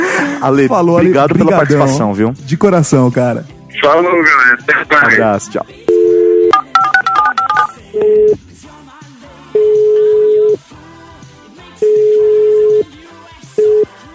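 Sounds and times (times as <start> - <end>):
speech: 0.4 - 5.8
touch-tone dialing beeps placing a prank call: 5.9 - 8.4, 9.6 - 10.6, 11.8 - 12.9, 13.6 - 13.9.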